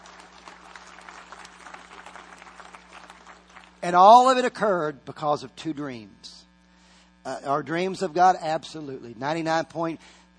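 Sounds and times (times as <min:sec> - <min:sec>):
audience clapping: 0:00.0 - 0:04.3
speech: 0:03.8 - 0:06.4, 0:07.2 - 0:10.2.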